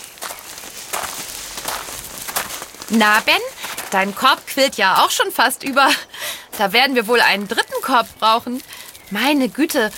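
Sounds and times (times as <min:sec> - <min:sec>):
footsteps walking in a row of a fruit-picking field: 0:00.0 - 0:09.9
speech: 0:02.9 - 0:09.9.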